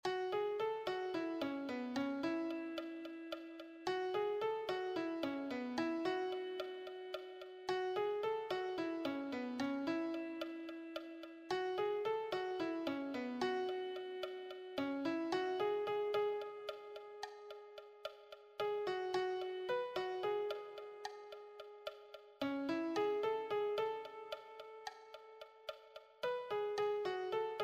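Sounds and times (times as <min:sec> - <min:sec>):
lead piano: 0:00.0 - 0:27.6.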